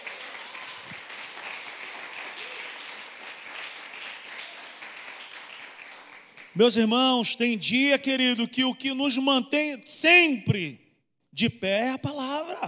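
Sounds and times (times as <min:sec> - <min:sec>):
audience applauding: 0:00.0 - 0:06.6
speech: 0:06.6 - 0:10.8, 0:11.4 - 0:12.6.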